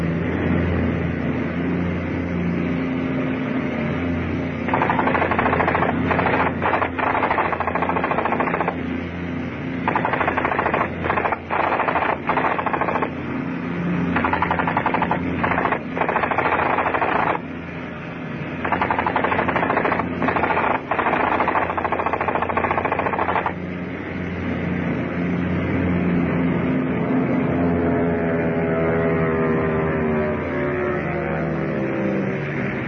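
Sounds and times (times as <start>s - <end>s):
low engine-like rumble: 0.0s - 32.8s
machine gun fire: 4.7s - 8.9s, 9.8s - 13.2s, 14.1s - 17.4s, 18.6s - 23.6s.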